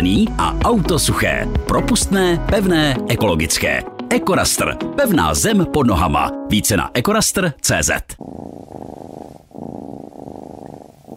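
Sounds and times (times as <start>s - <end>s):
speech: 0.0s - 8.8s
cat purring: 8.2s - 11.1s.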